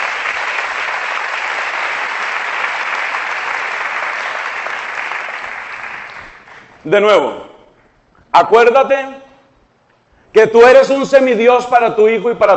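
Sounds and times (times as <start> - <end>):
audience applause: 0.0 - 6.8
speech: 6.8 - 7.5, 8.4 - 9.2, 10.3 - 12.5.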